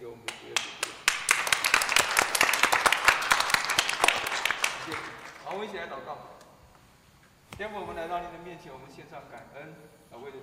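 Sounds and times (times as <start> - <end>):
audience applause: 0.6 - 5.8
speech: 5.6 - 6.4, 7.6 - 10.4.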